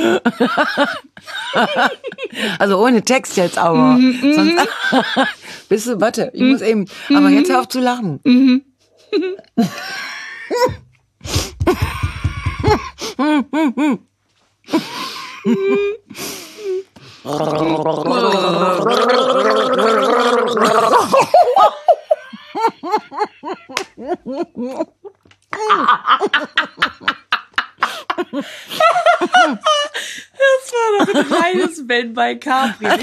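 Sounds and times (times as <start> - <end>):
laughter: 0.0 - 2.6, 3.8 - 5.4, 14.7 - 16.0, 18.1 - 30.1, 30.9 - 31.8, 32.6 - 33.0
speech: 0.0 - 12.0, 12.7 - 14.1, 14.7 - 16.3, 17.2 - 33.0
people gargling a song melody: 17.2 - 21.3.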